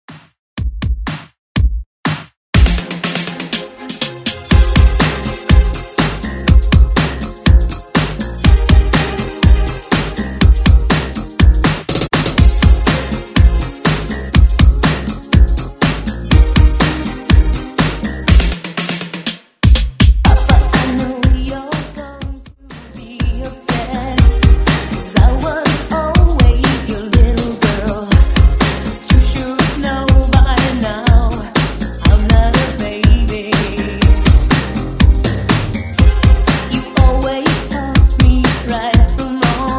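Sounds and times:
80s drum loop: 0.1s - 39.7s.

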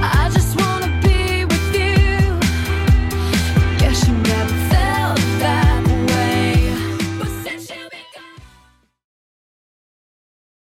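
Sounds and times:
drum loop at 131 bpm: 0.0s - 7.7s.

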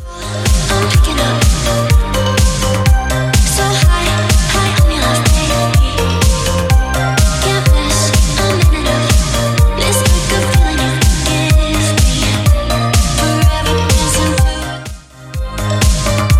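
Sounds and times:
drum machine beat: 0.0s - 16.3s.

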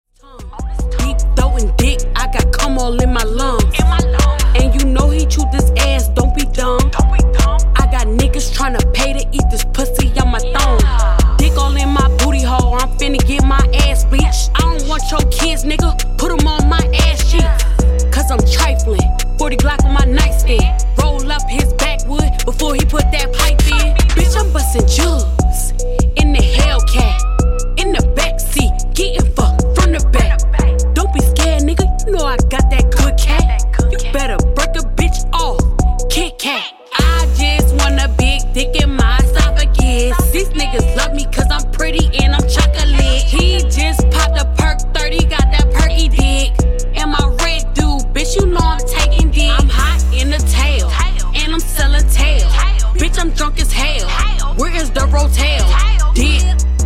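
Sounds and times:
funk intro and outro music at 75 BPM: 0.3s - 36.4s, 37.0s - 56.8s.

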